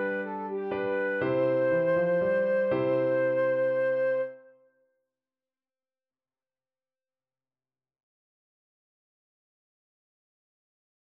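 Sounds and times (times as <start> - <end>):
flute playing a minuet: 0.0 - 4.6.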